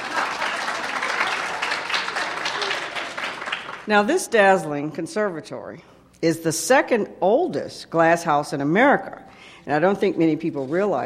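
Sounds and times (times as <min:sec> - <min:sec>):
audience applause: 0:00.0 - 0:03.9
speech: 0:03.9 - 0:11.0.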